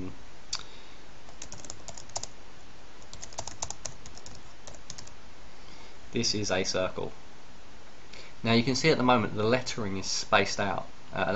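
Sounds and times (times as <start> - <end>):
typing on a computer keyboard: 1.3 - 2.3, 3.0 - 5.1
speech: 6.1 - 7.2, 8.4 - 11.3.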